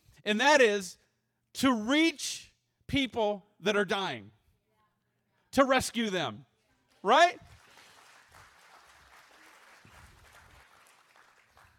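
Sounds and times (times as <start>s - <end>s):
speech: 0.2s - 1.0s, 1.6s - 4.4s, 5.5s - 7.5s
audience clapping: 6.9s - 11.7s.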